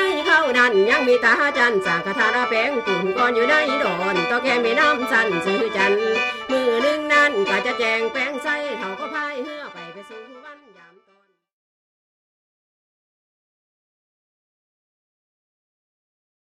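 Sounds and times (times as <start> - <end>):
Thai lam klawn folk singing: 0.0 - 11.0.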